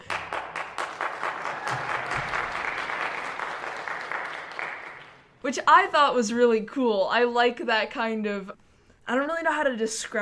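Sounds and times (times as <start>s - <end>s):
theater audience applause: 0.0s - 5.3s
speech: 5.5s - 10.2s.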